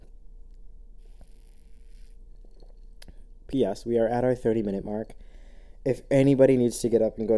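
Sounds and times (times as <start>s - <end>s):
low steady hum: 0.0s - 7.3s
person sipping coffee: 1.0s - 3.4s
speech: 3.5s - 5.2s, 5.8s - 7.3s.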